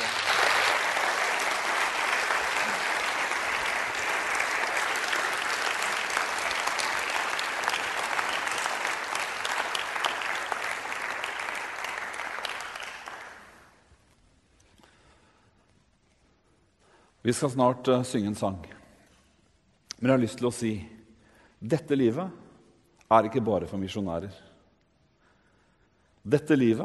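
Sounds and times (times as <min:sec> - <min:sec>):
audience applause: 0:00.0 - 0:13.8
speech: 0:17.3 - 0:18.8, 0:20.0 - 0:21.0, 0:21.6 - 0:22.4, 0:23.1 - 0:24.5, 0:26.2 - 0:26.8.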